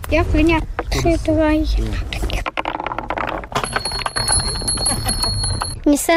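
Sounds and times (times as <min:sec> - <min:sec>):
speech: 0:00.1 - 0:02.2, 0:05.9 - 0:06.1
rolling clatter of a wooden marble run: 0:02.2 - 0:05.8
small bells ringing: 0:03.5 - 0:05.9.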